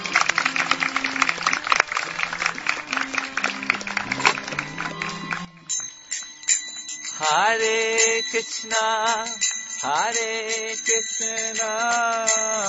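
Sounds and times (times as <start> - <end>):
audience applause: 0.0 - 5.5
speech: 7.5 - 12.6.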